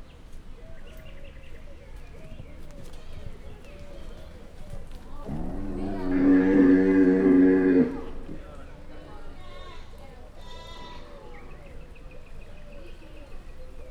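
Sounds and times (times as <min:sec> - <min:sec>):
male Bactrian camel calling after the female in a zoo: 0:05.3 - 0:08.4.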